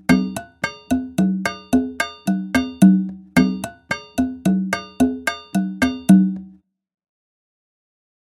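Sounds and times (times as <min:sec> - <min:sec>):
Latin American Abakua rhythm: 0:00.0 - 0:06.6.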